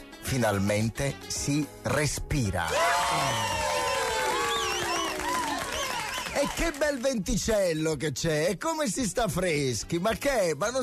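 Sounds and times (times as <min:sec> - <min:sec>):
speech: 0:00.3 - 0:03.6, 0:06.4 - 0:10.8
cheering and whistles: 0:02.7 - 0:06.7
crowd applause: 0:02.7 - 0:07.2.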